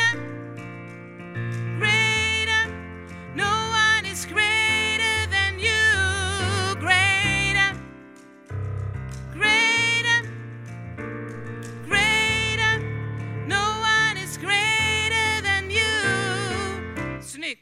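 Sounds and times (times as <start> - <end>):
soprano voice: 1.8 - 7.9, 9.4 - 10.3, 11.8 - 17.6.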